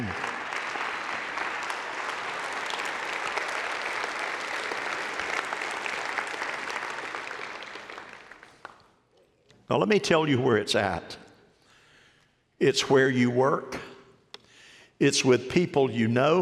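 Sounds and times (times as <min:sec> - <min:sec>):
audience clapping: 0:00.0 - 0:09.0
speech: 0:09.7 - 0:11.2, 0:12.6 - 0:13.9, 0:15.0 - 0:16.3.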